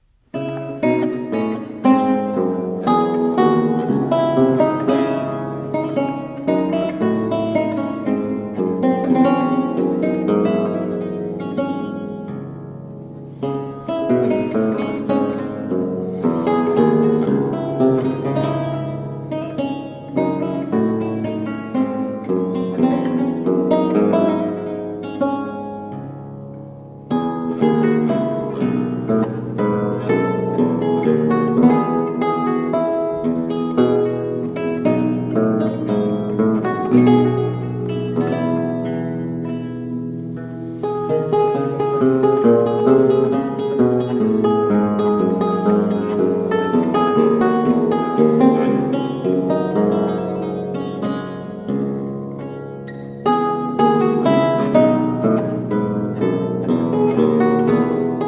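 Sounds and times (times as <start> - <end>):
minuet on lute: 0.0 - 58.2.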